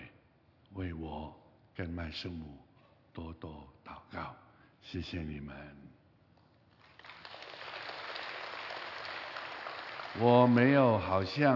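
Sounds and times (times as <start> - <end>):
speech: 0.8 - 6.0, 10.2 - 11.5
audience applause: 6.8 - 11.5.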